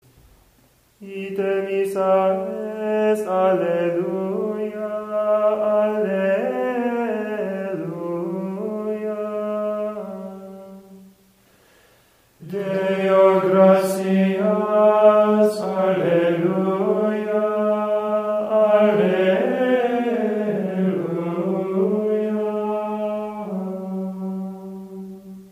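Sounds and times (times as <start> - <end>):
liturgical chant: 1.0 - 11.2, 12.4 - 25.5.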